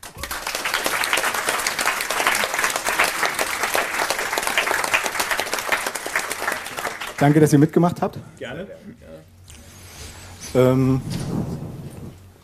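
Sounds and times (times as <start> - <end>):
crowd applauding: 0.0 - 8.1
speech: 7.2 - 9.4, 10.5 - 11.6.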